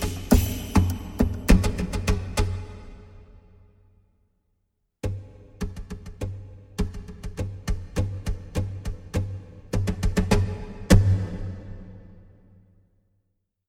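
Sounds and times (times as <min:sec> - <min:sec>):
percussion: 0:00.0 - 0:03.5, 0:05.0 - 0:12.3.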